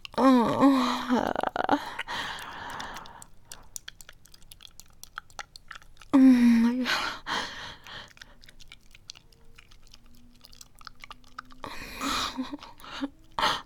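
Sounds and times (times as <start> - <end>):
messy licking, sucking and slurping noises: 0.0 - 0.2, 1.0 - 13.6
person giggling: 0.2 - 2.2, 11.7 - 13.6
person moaning: 0.2 - 2.2, 6.2 - 7.4, 11.6 - 13.6.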